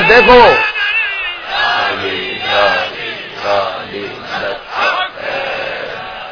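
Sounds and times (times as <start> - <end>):
crowd chanting a slogan: 0.0 - 6.2.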